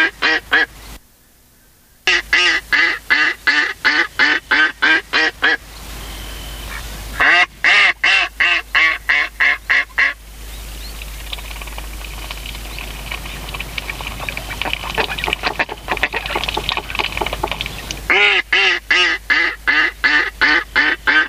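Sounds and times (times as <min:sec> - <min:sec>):
mallard quacking: 0:00.0 - 0:00.7, 0:02.1 - 0:05.6, 0:06.7 - 0:10.2, 0:13.1 - 0:21.2.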